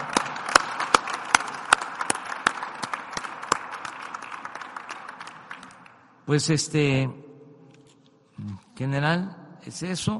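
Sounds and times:
audience applauding: 0.0 - 6.1
speech: 6.3 - 7.2, 8.8 - 10.1.

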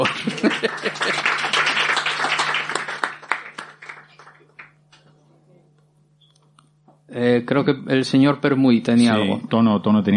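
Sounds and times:
laughter: 0.0 - 1.8
audience applause: 0.0 - 4.7
speech: 7.4 - 10.1.

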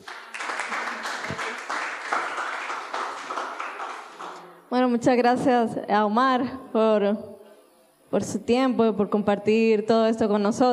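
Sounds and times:
audience applause: 0.0 - 4.6
speech: 4.9 - 7.3, 8.1 - 10.7.

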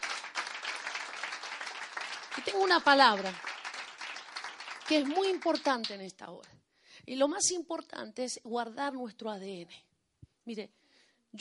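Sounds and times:
audience applause: 0.0 - 5.9
speech: 2.4 - 3.5, 4.9 - 11.4.

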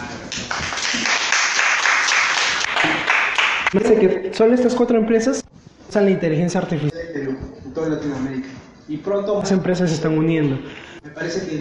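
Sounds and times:
audience applause: 0.3 - 3.8
speech: 3.7 - 5.4, 6.0 - 11.5.

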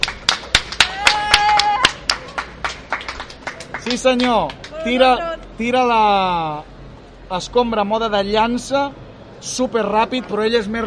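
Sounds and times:
hand clapping: 0.0 - 4.8
high whoop or whistle: 0.8 - 2.0
speech: 3.9 - 6.7, 7.3 - 10.8.

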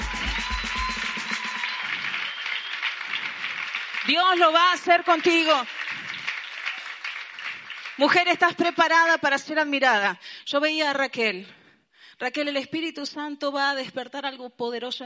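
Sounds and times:
audience applause: 0.0 - 8.5
speech: 4.1 - 5.8, 8.0 - 11.6, 12.2 - 15.0.

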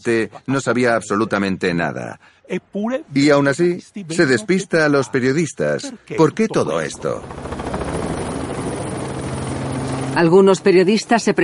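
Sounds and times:
speech: 0.0 - 7.7, 10.2 - 11.4
helicopter during a staged Carabinieri police raid: 6.2 - 11.4.

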